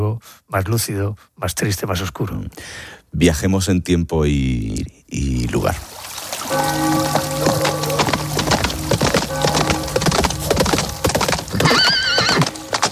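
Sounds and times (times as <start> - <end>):
speech: 0.2 - 5.9
horses' hooves clip-clopping: 6.2 - 12.9
horse whinnying: 11.5 - 12.9.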